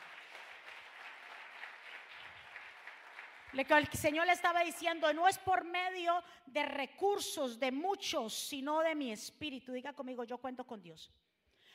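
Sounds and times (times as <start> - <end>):
applause for the Lord: 0.0 - 3.6
speech: 3.6 - 11.2.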